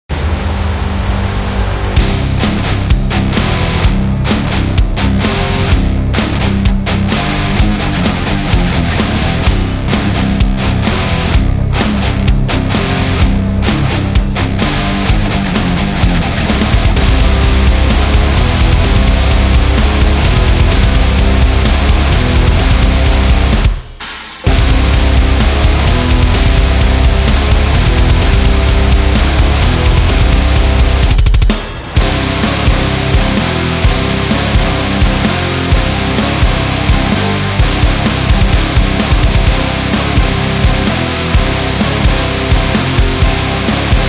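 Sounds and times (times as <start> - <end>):
aggressive metal music: 0.0 - 44.0.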